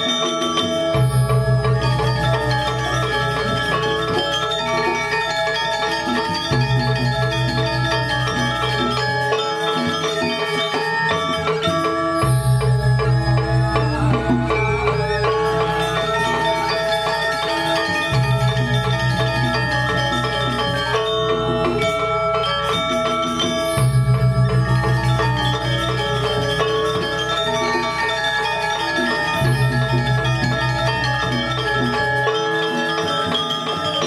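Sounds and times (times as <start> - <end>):
dense ensemble of ringing metallic percussion playing at the Puri Saren Agung palace in Ubud: 0.0 - 34.0.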